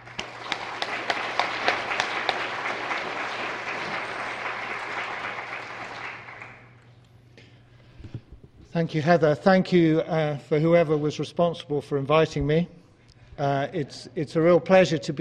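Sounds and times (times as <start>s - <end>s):
audience applauding a speaker at a talk for Christian scholars: 0.0s - 6.8s
speech: 8.8s - 12.8s, 13.4s - 15.2s.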